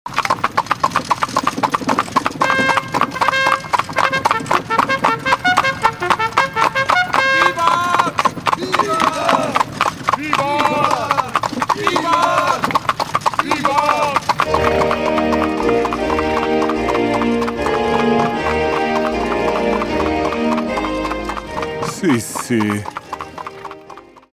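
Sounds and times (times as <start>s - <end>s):
horse carriage: 0.1s - 24.3s.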